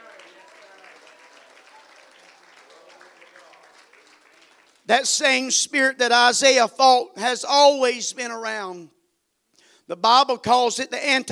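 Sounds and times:
audience clapping hands: 0.0s - 5.1s
speech: 4.9s - 9.0s, 9.9s - 11.2s.

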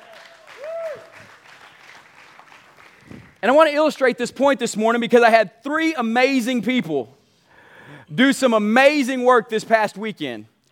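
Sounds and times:
room full of people clapping: 0.0s - 3.8s
speech: 3.4s - 7.2s, 8.2s - 10.5s.

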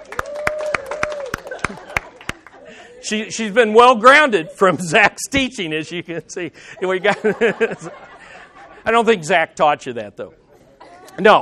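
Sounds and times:
class clapping to welcome a new member: 0.0s - 2.7s
laughter: 1.3s - 3.4s, 4.0s - 5.2s, 5.9s - 8.9s, 10.5s - 11.4s
speech: 1.7s - 1.9s, 3.0s - 8.1s, 8.8s - 10.4s, 11.2s - 11.4s.

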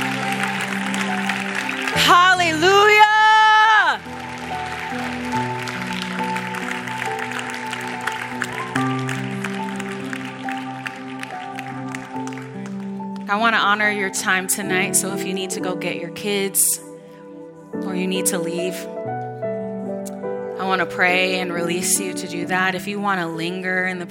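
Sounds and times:
audience clapping: 0.0s - 13.4s
speech: 13.3s - 16.9s, 18.0s - 19.0s, 20.7s - 24.0s.

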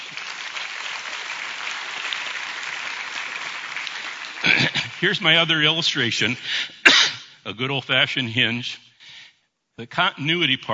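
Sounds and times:
audience applause: 0.0s - 5.8s
speech: 5.0s - 6.8s, 7.4s - 8.8s, 9.8s - 10.7s.

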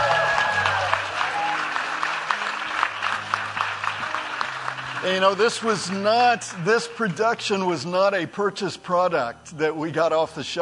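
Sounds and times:
audience hand clapping: 0.0s - 7.6s
speech: 5.0s - 10.5s.

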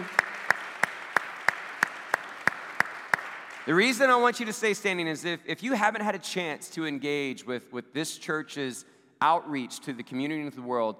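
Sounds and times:
audience applause: 0.0s - 4.1s
speech: 3.7s - 10.9s.

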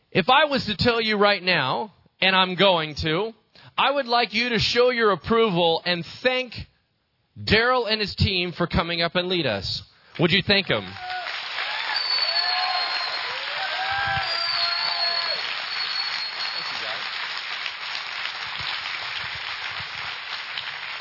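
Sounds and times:
speech: 0.1s - 6.7s, 7.4s - 11.2s
audience clapping: 10.1s - 21.0s.

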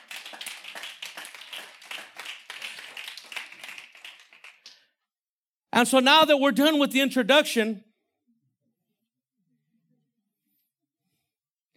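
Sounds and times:
audience applause: 0.0s - 4.7s
speech: 5.8s - 7.9s.

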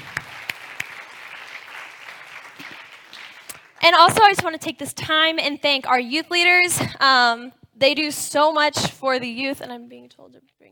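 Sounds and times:
crowd applauding: 0.0s - 4.4s
speech: 3.8s - 10.6s.

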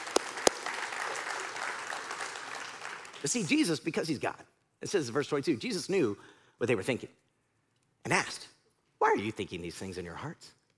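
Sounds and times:
audience clapping: 0.0s - 3.4s
speech: 3.2s - 7.2s, 8.1s - 8.5s, 9.2s - 10.6s.

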